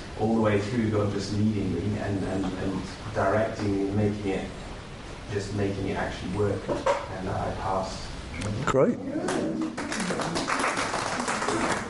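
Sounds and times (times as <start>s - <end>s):
speech: 0.2s - 4.6s, 5.3s - 10.5s
moderate audience clapping: 9.2s - 11.8s.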